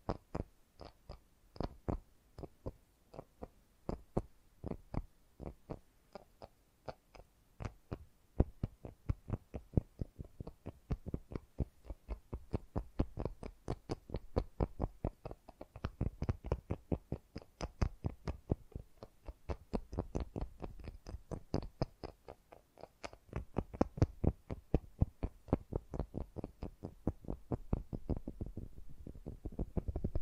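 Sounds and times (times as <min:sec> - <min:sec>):
fast gentle tapping: 0:00.0 - 0:30.2.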